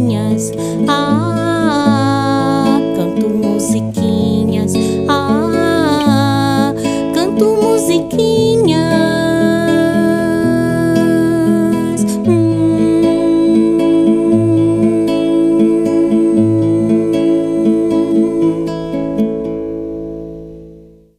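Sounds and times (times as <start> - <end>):
person singing: 0.0 - 19.4.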